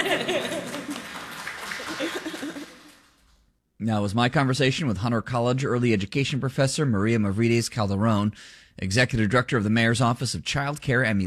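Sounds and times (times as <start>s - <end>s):
people chuckling: 0.0s - 3.0s
audience clapping: 0.0s - 3.4s
speech: 3.8s - 11.2s.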